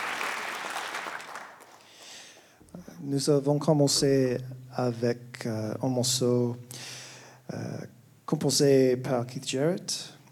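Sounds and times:
studio audience applauding in a concert studio: 0.0 - 2.0
speech: 3.0 - 6.8, 8.3 - 10.2.

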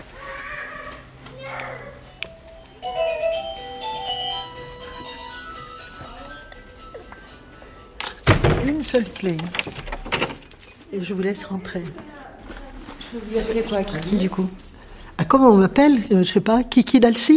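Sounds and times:
doorbell ringing: 2.0 - 10.6
speech: 8.8 - 9.8, 10.9 - 12.1, 13.1 - 14.6, 15.3 - 17.3.

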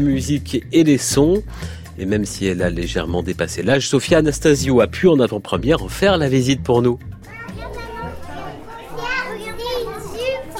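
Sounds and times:
speech: 0.0 - 7.2
children chattering and squealing at the Philharmonie des enfants in Paris: 7.2 - 10.5.

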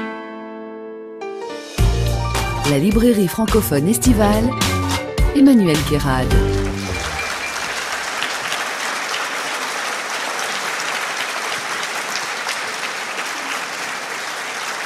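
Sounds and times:
speech: 2.7 - 6.6
audience applause: 6.3 - 14.8.

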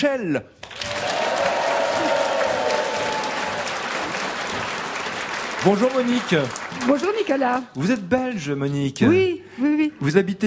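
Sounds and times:
speech: 0.0 - 0.8, 5.6 - 10.4
audience applause: 0.6 - 7.8
audience cheering: 0.7 - 7.0.

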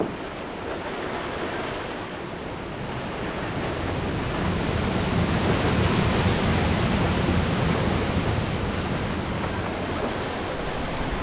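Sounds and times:
sugar beet washing station water jets rushing and splashing: 0.0 - 11.2.

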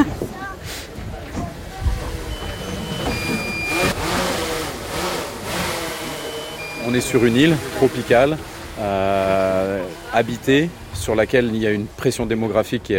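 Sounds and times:
drone motor buzzing while flying: 2.1 - 10.2
speech: 6.9 - 12.9.

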